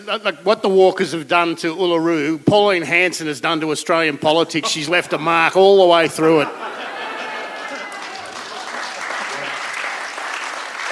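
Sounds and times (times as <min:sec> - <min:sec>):
speech: 0:00.0 - 0:06.7
laughter: 0:04.6 - 0:10.2
audience applause: 0:06.7 - 0:10.8.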